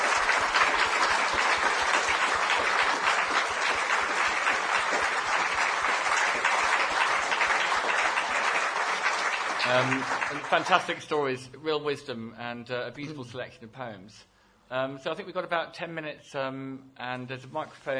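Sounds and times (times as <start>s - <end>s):
audience applause: 0.0s - 11.0s
speech: 9.7s - 17.9s.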